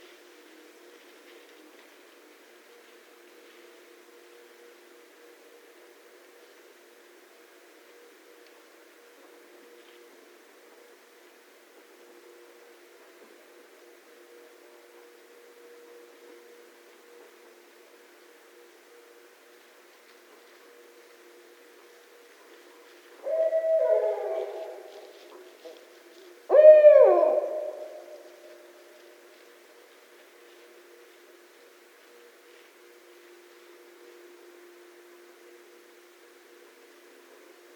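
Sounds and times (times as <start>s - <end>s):
Barred Owl calling: 23.2s - 25.8s, 26.5s - 28.7s.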